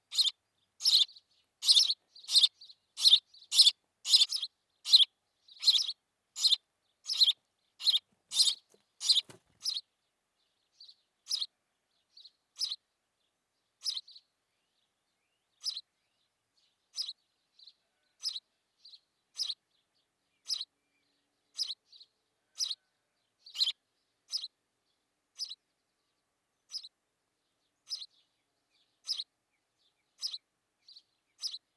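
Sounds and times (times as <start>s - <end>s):
house sparrow chirping: 0.0s - 12.9s, 13.6s - 24.6s, 25.3s - 25.8s, 26.6s - 31.7s.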